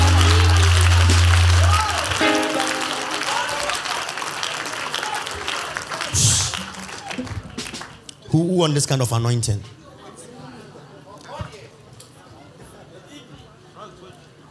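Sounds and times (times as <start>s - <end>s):
audience clapping: 0.0s - 8.1s
speech: 8.4s - 9.8s.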